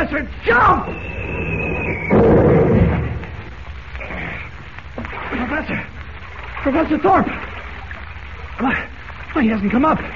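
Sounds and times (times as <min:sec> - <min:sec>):
speech: 0:00.1 - 0:01.2, 0:05.6 - 0:06.0, 0:06.6 - 0:07.5, 0:08.6 - 0:10.1
artillery shell whistling: 0:00.6 - 0:02.4
artillery shell explosion: 0:01.0 - 0:03.5.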